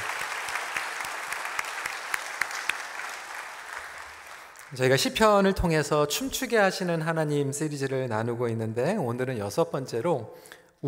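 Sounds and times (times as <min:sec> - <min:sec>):
audience applause: 0:00.0 - 0:05.0
speech: 0:04.7 - 0:10.8.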